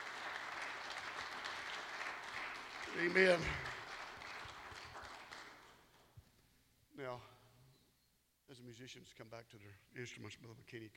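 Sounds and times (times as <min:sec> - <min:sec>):
audience clapping: 0:00.0 - 0:06.1
speech: 0:02.9 - 0:03.6, 0:07.1 - 0:07.4, 0:08.6 - 0:10.9.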